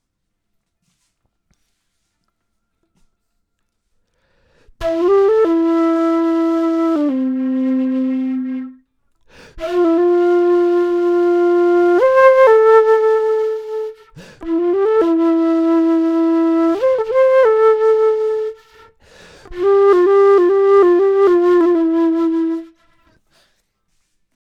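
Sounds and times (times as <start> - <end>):
flute: 4.7 - 23.2.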